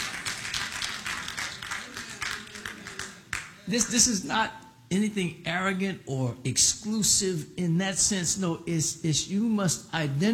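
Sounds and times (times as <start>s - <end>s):
audience clapping: 0.0s - 3.6s
speech: 3.7s - 10.3s.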